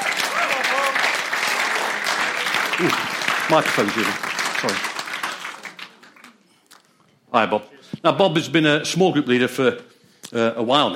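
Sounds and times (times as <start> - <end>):
audience applause: 0.0 - 6.4
speech: 2.8 - 4.9, 7.3 - 10.9.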